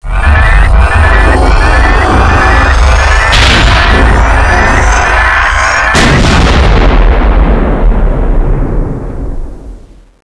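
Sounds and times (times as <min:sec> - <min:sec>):
crash: 0:00.1 - 0:10.1.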